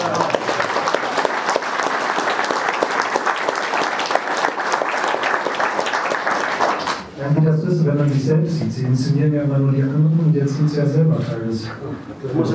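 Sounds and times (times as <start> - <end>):
audience applause: 0.0 - 7.2
speech: 7.9 - 12.5.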